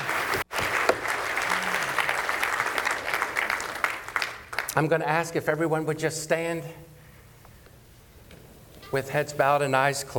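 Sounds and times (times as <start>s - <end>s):
crowd applauding: 0.0s - 4.8s
speech: 4.8s - 6.9s, 8.9s - 10.1s.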